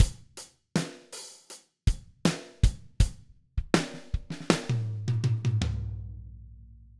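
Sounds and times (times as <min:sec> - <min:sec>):
drum loop: 0:00.0 - 0:00.3, 0:02.3 - 0:05.6.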